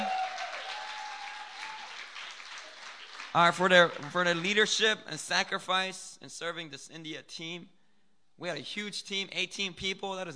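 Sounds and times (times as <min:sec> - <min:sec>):
church gathering audience hand clapping: 0:00.0 - 0:04.5
speech: 0:03.4 - 0:07.8, 0:08.4 - 0:10.3.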